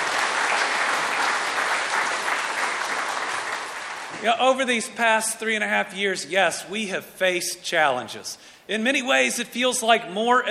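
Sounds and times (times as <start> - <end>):
crowd applauding: 0.0 - 4.2
speech: 4.2 - 10.5.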